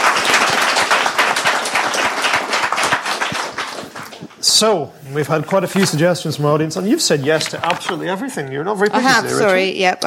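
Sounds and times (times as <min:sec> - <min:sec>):
audience applause: 0:00.0 - 0:04.4
speech: 0:04.6 - 0:10.0.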